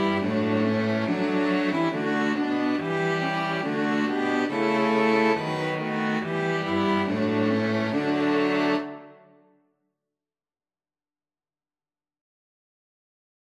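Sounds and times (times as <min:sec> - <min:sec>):
string quartet playing a wassailing tune: 0:00.0 - 0:09.2.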